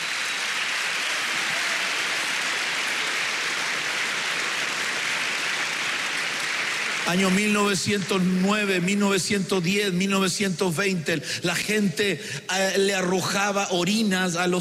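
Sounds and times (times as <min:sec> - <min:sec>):
people clapping: 0:00.0 - 0:09.0
speech: 0:07.1 - 0:14.5.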